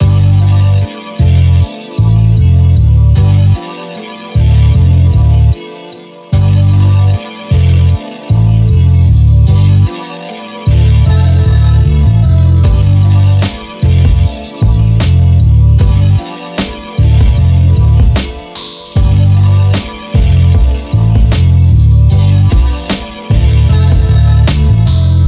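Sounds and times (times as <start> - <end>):
hip hop music: 0.0 - 25.2.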